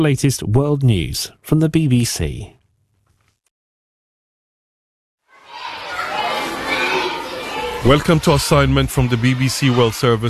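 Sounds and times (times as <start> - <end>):
speech: 0.0 - 2.6, 7.8 - 10.2
small excited schoolboys chattering and shouting in primary school corridors in Khartoum, Sudan: 5.3 - 10.2.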